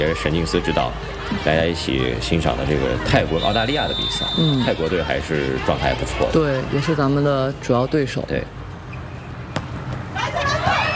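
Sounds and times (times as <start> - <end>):
commentators talking: 0.0 - 8.6
speech: 0.0 - 8.6
crowd noise at a Thailand versus Australia volleyball match: 0.0 - 10.9
volleyball bouncing on the court before a serve: 9.5 - 10.1.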